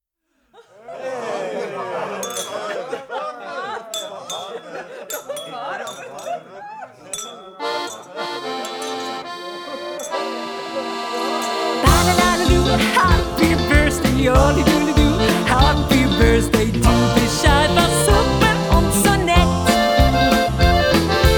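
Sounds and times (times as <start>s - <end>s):
laughter: 0.5s - 21.3s
birthday song: 7.6s - 21.3s.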